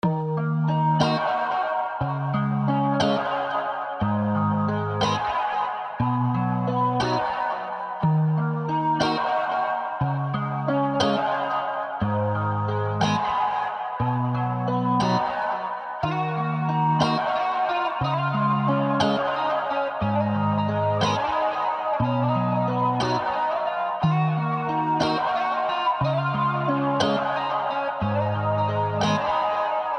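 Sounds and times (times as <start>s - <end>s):
pop music in G minor at 120 bpm: 0.0s - 29.9s.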